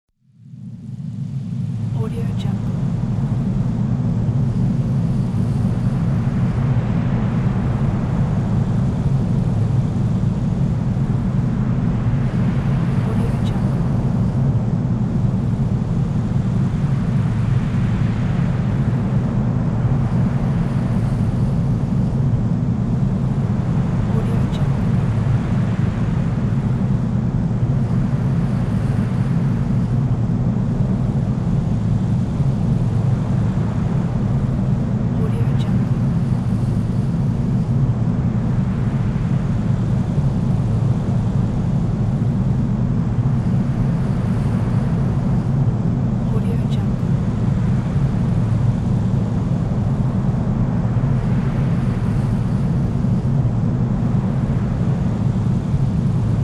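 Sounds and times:
wind: 0.3s - 56.4s.

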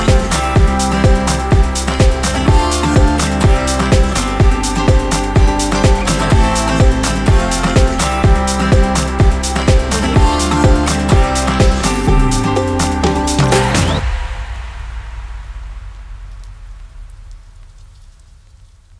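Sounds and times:
uplifting folk EDM music: 0.0s - 14.4s.

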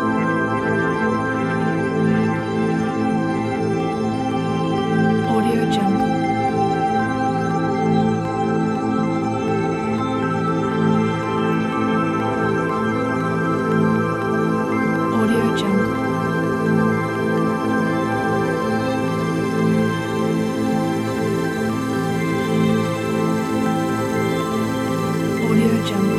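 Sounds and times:
ambient drone: 0.0s - 26.1s.

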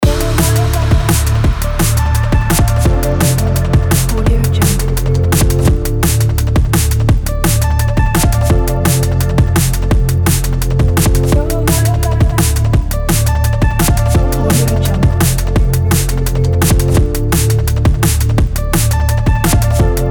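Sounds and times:
breakbeat drums: 0.0s - 20.0s.

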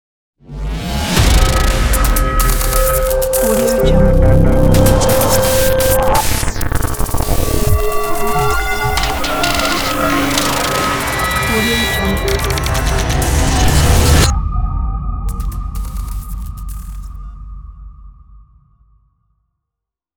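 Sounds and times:
hi-tech glitchy futuristic logo sound: 1.2s - 14.4s, 15.3s - 17.2s.

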